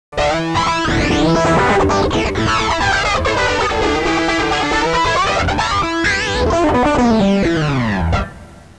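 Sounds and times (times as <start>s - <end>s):
musical riff: 0.2s - 8.6s.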